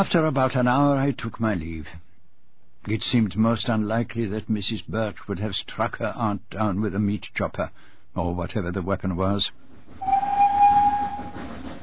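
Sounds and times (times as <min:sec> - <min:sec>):
speech: 0:00.0 - 0:02.1, 0:02.8 - 0:10.2
train: 0:09.2 - 0:11.8.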